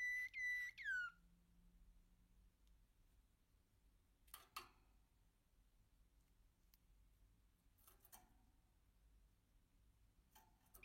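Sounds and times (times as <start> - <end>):
American canary song with sharp chips, clicks and rolling trills: 0.0 - 1.2, 10.6 - 10.8.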